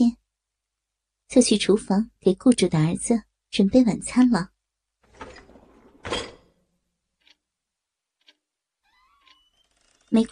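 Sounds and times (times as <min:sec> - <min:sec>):
speech: 0:01.3 - 0:04.5, 0:10.2 - 0:10.3
door opening: 0:05.0 - 0:06.7, 0:08.8 - 0:10.3.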